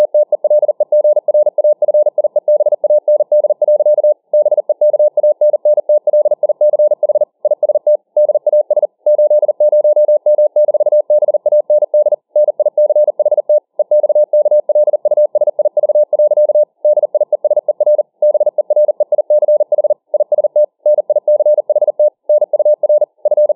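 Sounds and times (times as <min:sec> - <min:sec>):
Morse code at 40 words per minute: 0:00.0 - 0:23.5.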